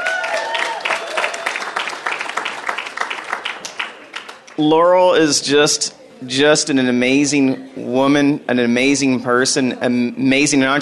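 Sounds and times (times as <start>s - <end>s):
audience applause: 0.0s - 4.6s
speech: 4.6s - 10.7s.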